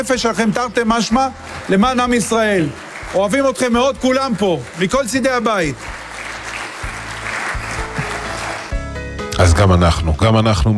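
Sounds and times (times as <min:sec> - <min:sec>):
speech: 0:00.0 - 0:06.0, 0:09.6 - 0:10.7
audience applause: 0:00.9 - 0:08.8.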